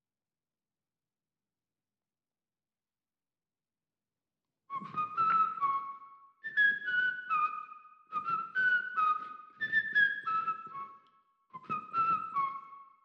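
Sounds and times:
whistle: 0:04.7 - 0:13.0.

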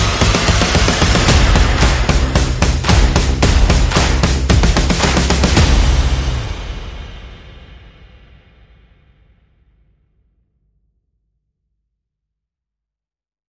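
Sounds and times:
bass: 0:00.0 - 0:07.5
sound effects: 0:00.0 - 0:08.0
percussion: 0:00.0 - 0:09.3.

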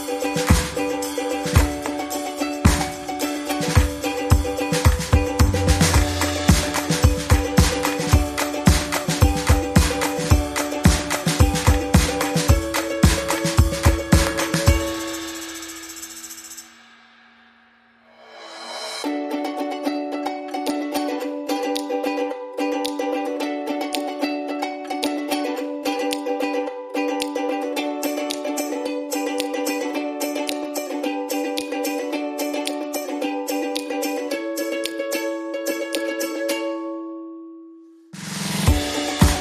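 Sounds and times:
ukulele: 0:00.0 - 0:16.6, 0:19.0 - 0:39.3
drums: 0:00.0 - 0:19.2, 0:38.2 - 0:39.3.

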